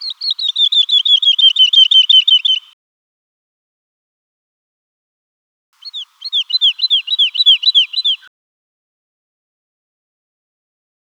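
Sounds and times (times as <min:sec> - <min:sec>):
woodlark singing: 0:00.0 - 0:02.8, 0:05.8 - 0:08.3.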